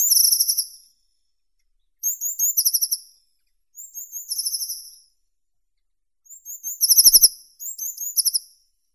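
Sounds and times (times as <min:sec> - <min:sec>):
blue tit Cyanistes caeruleus: 0:02.0 - 0:03.0, 0:03.8 - 0:05.0, 0:06.3 - 0:08.5.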